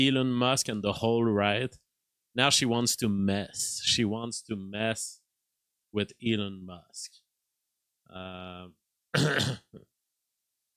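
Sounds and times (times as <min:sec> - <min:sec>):
speech: 0:00.0 - 0:01.8, 0:02.4 - 0:05.2, 0:05.9 - 0:07.2, 0:08.1 - 0:09.9
sneeze: 0:09.2 - 0:09.7.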